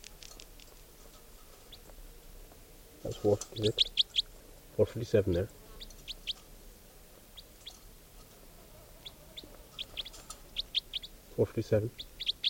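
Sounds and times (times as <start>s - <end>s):
bird song: 1.3s - 2.0s, 3.0s - 6.5s, 7.2s - 12.4s
speech: 3.0s - 3.9s, 4.8s - 5.6s, 11.4s - 12.1s.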